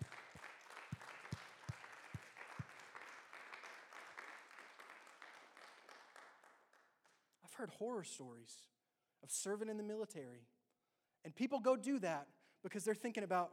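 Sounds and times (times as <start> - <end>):
audience applause: 0.0 - 6.8
speech: 7.6 - 10.6, 11.2 - 13.5.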